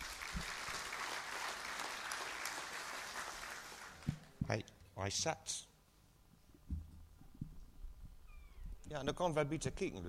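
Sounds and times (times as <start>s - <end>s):
applause: 0.0s - 4.3s
speech: 4.5s - 5.7s, 8.9s - 10.0s.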